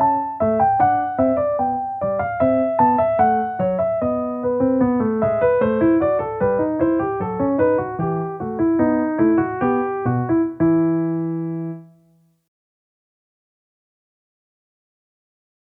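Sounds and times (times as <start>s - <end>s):
baroque piano piece in E minor: 0.0s - 12.3s.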